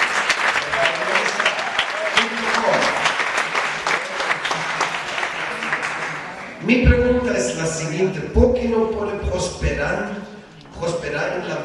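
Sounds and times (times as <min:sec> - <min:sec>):
audience applause for a talk on vegetarian diet: 0:00.0 - 0:06.6
speech: 0:07.6 - 0:11.6.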